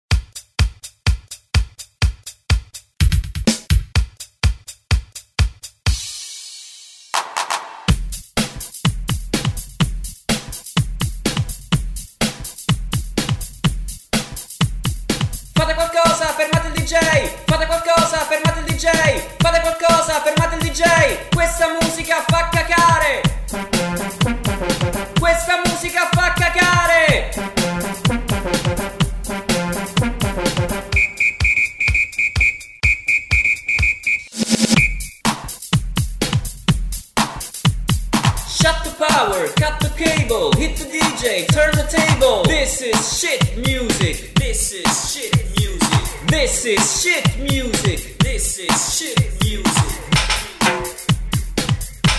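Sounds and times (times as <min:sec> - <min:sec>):
punk rock disco music: 0:00.3 - 0:06.5, 0:07.3 - 0:52.1.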